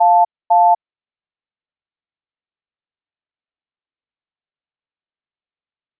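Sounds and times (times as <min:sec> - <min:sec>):
phone waiting tone: 0:00.0 - 0:00.8.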